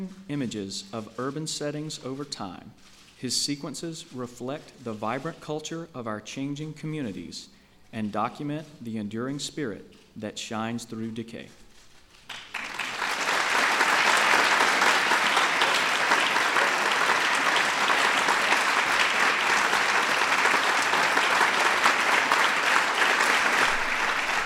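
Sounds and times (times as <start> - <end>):
speech: 0.0 - 11.6
crowd applause: 12.3 - 24.4.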